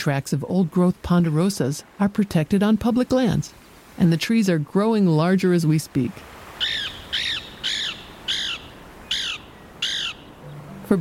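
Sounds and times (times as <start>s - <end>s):
speech: 0.0s - 6.8s
Lewis's woodpecker harsh raspy calls: 6.6s - 10.9s.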